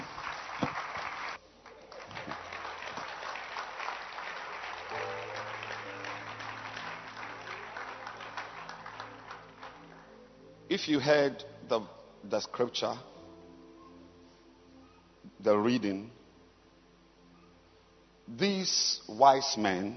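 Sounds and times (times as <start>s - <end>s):
audience clapping hands: 0.0s - 10.3s
speech: 10.8s - 13.1s, 15.4s - 16.2s, 18.3s - 19.9s.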